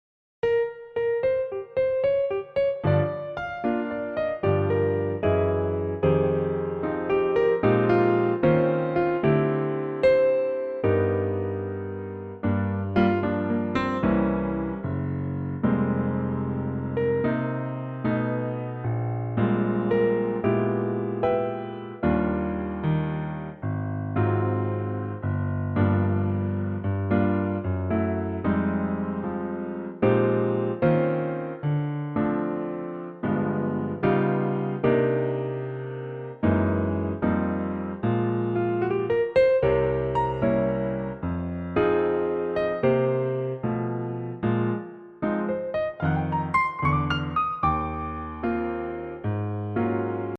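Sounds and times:
piano backing track: 0:00.4 - 0:50.3.

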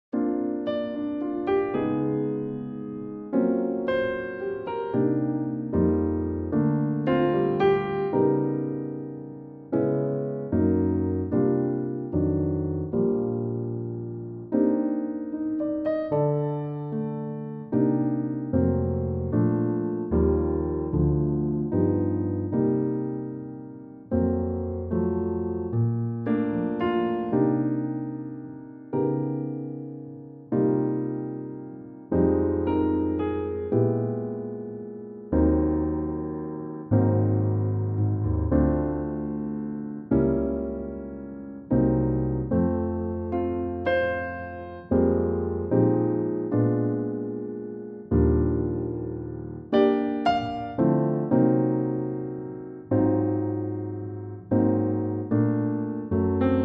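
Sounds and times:
piano in B flat: 0:00.0 - 0:56.6.

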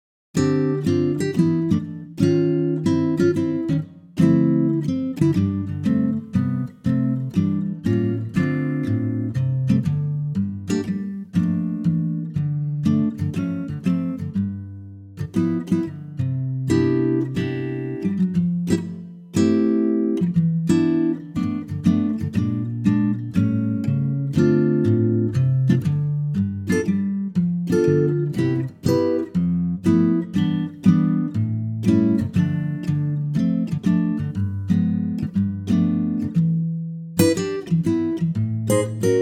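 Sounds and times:
acoustic guitar in C: 0:00.4 - 0:39.2.

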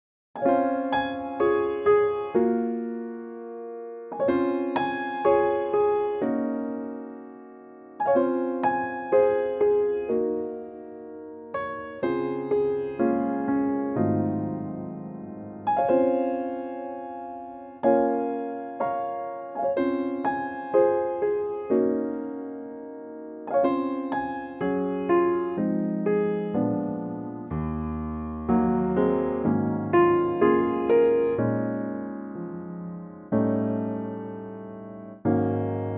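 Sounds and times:
piano track in D-flat: 0:00.4 - 0:35.9.

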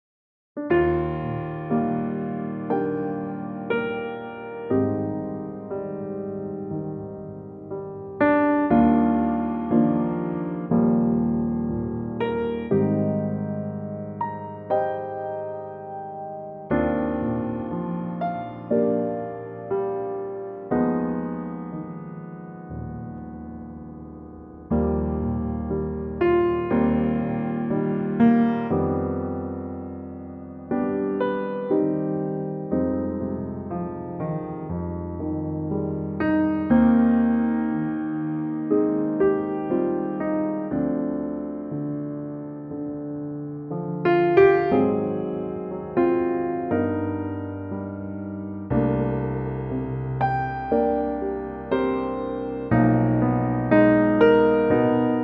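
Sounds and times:
electric piano: 0:00.6 - 0:55.2.

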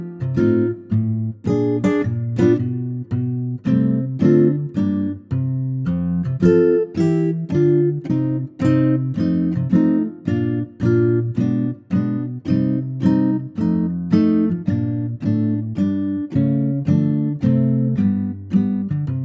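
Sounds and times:
acoustic guitar arrangement in F: 0:00.0 - 0:19.2.

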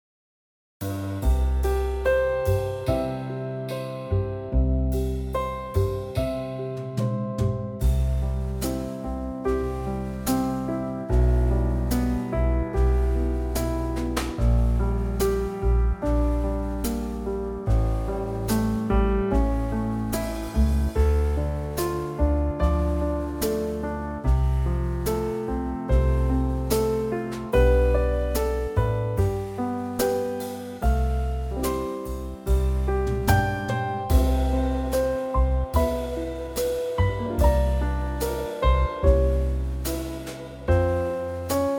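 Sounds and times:
trio backing track in C for male vocals: 0:00.8 - 0:41.7.

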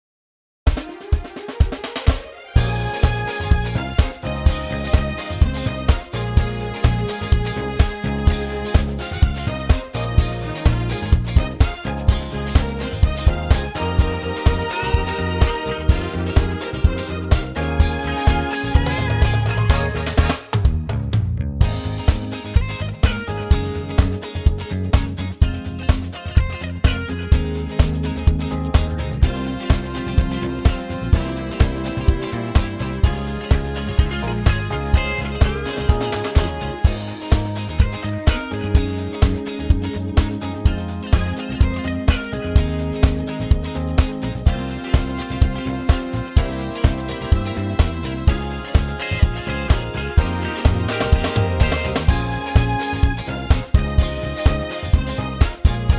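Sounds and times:
backing track in A-flat for male vocals: 0:00.7 - 0:55.9.

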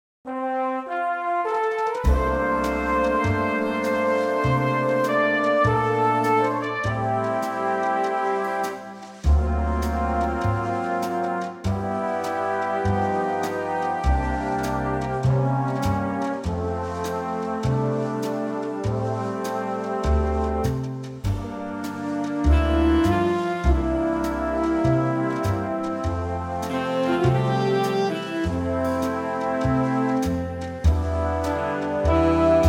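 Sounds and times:
big band music in F: 0:00.3 - 0:32.6.

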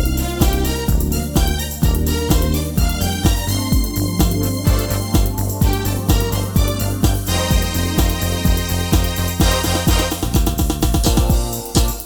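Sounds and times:
live music track in B flat: 0:00.1 - 0:12.0.

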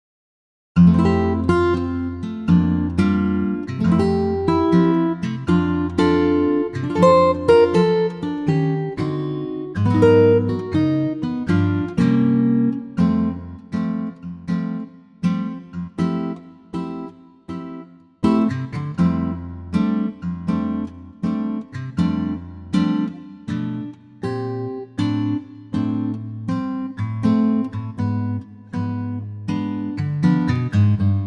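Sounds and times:
acoustic guitar in F: 0:00.8 - 0:31.2.

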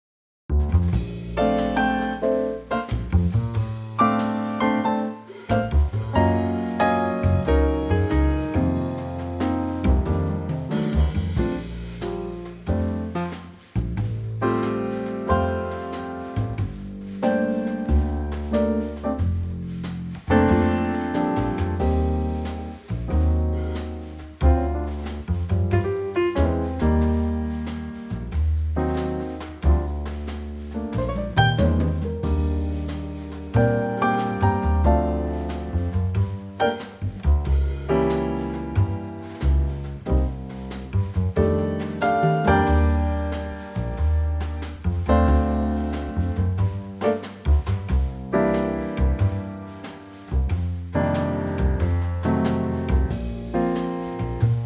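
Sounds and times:
B flat instrumental trio: 0:00.5 - 0:54.6.

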